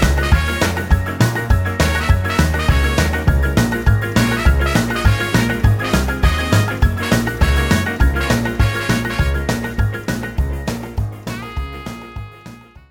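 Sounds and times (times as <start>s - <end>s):
backing track music in D flat without backing vocals: 0.0s - 12.8s.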